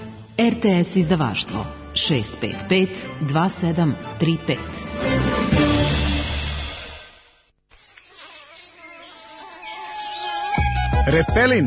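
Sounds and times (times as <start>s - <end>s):
speech: 0.4s - 5.6s, 11.1s - 11.6s
mosquito buzzing: 7.7s - 11.2s.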